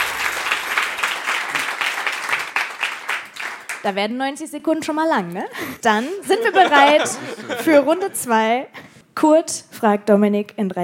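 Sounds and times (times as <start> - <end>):
audience applause: 0.0 - 3.9
speech: 3.8 - 10.8
laughter: 5.7 - 8.6.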